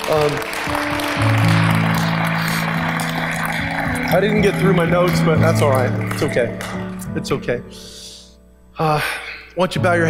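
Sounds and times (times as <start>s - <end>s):
audience clapping hands: 0.0s - 7.2s
speech: 0.1s - 1.6s, 4.1s - 8.0s, 8.8s - 10.0s.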